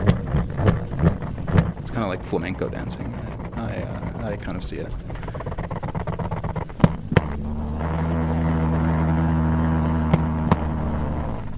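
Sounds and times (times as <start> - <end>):
jumping spider courtship vibrations on nylon: 0.0 - 11.5
speech: 1.9 - 5.4.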